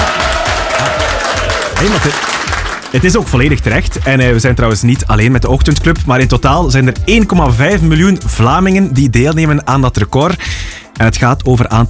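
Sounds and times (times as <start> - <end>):
small round of applause celebrating a group record: 0.0 - 3.3
speech: 1.8 - 11.8.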